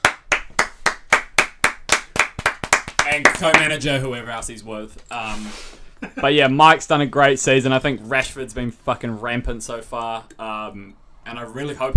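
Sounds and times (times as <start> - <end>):
people clapping: 0.0 - 3.8
speech: 3.1 - 11.9.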